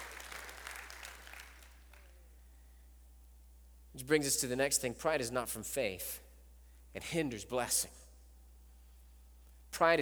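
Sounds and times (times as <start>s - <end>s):
audience applause: 0.0s - 2.1s
speech: 4.0s - 6.2s, 6.9s - 8.0s, 9.8s - 9.9s.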